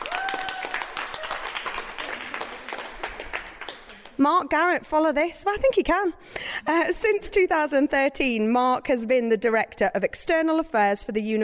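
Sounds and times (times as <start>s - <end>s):
audience applause: 0.0s - 4.2s
speech: 4.2s - 11.4s.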